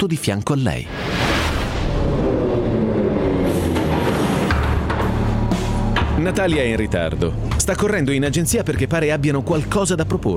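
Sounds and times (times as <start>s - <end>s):
speech: 0.0s - 1.2s, 6.2s - 10.3s
subway train rolling with a steady low roar: 1.8s - 6.0s.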